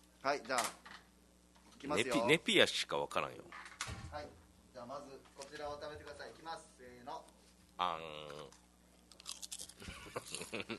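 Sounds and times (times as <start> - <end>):
speech: 0.2 - 0.9, 1.8 - 8.6, 9.8 - 10.7
crunching Consommé Punch potato chips: 8.3 - 10.6.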